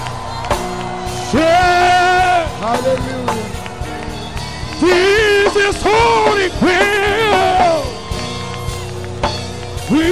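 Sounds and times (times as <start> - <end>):
audience shouting and cheering: 0.0 - 10.1
sustained organ-like tones: 0.0 - 10.1
speech: 1.3 - 1.5, 4.8 - 7.1.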